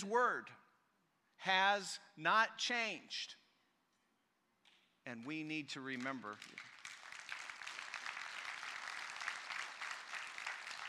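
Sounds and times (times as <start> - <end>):
speech: 0.0 - 0.6, 1.4 - 3.4, 5.0 - 6.7
crowd applause: 6.4 - 10.8.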